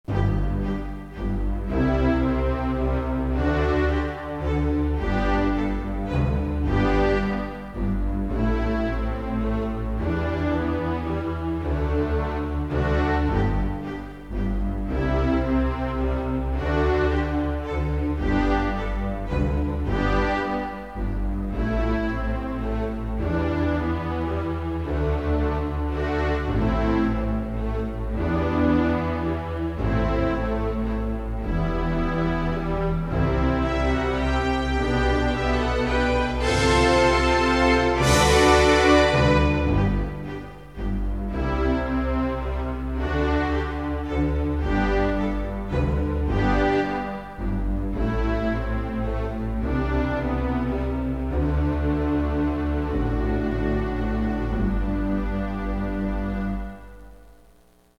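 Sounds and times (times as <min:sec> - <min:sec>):
stately waltz music: 0:00.0 - 0:57.9.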